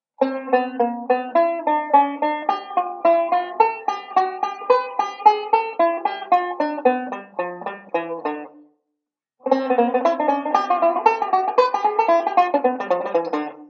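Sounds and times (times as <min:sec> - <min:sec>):
banjo playing a ii V pattern: 0:00.2 - 0:08.7, 0:09.4 - 0:13.6.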